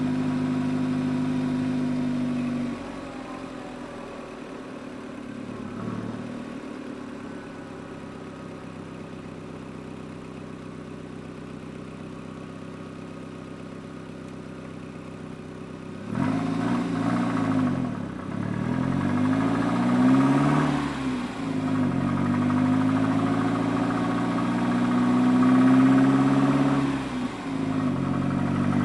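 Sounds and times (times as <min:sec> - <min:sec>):
endurance race car engine heard onboard: 0:00.0 - 0:28.8.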